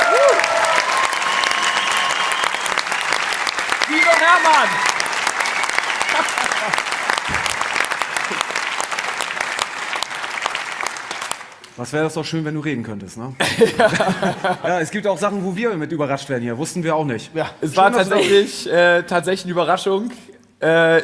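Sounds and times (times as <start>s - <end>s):
big round of applause: 0.0s - 11.6s
speech: 4.3s - 4.9s, 6.6s - 6.8s, 11.8s - 21.0s
laughter: 6.0s - 7.0s, 13.4s - 14.7s.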